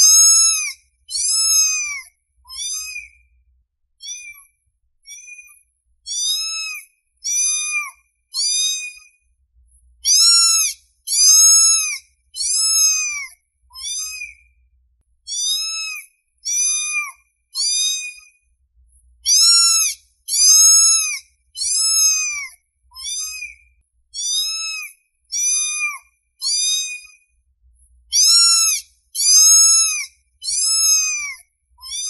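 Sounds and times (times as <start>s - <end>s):
domestic cat meowing: 0.0s - 3.1s, 4.0s - 4.4s, 6.1s - 9.1s, 10.0s - 14.4s, 15.3s - 18.3s, 19.3s - 23.6s, 24.2s - 27.2s, 28.1s - 32.0s.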